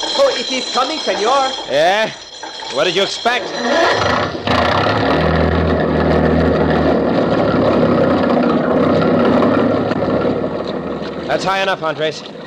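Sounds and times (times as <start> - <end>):
speech: 0.4 - 5.0, 11.3 - 12.4
motor starting and running: 3.4 - 11.4.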